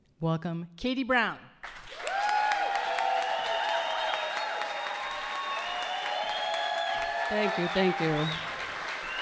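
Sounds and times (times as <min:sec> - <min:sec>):
speech: 0:00.2 - 0:01.8, 0:07.3 - 0:08.5
audience applause: 0:01.6 - 0:09.2
whistles: 0:03.1 - 0:09.2.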